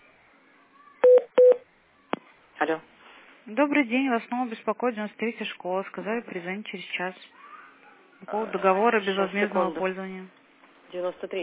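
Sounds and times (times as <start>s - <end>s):
telephone keypad DTMF tones: 1.0s - 1.6s
speech: 2.7s - 2.9s, 3.6s - 7.4s, 8.2s - 11.4s.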